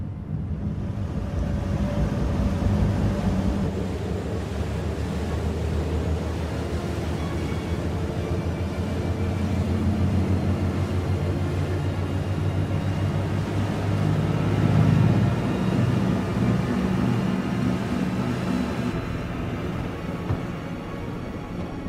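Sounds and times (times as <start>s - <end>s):
vehicle engine running at low speed at low revs: 0.0s - 21.8s.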